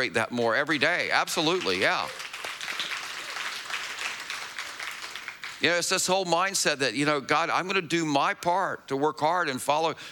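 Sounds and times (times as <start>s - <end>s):
speech: 0.0s - 2.2s, 5.6s - 10.0s
crowd applauding: 1.2s - 5.7s.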